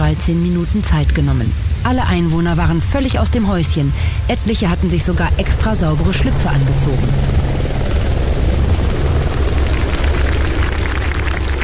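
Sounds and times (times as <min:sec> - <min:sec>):
speech: 0:00.1 - 0:07.4
Flugbereitschaft helicopter landing on sports field: 0:04.3 - 0:11.6.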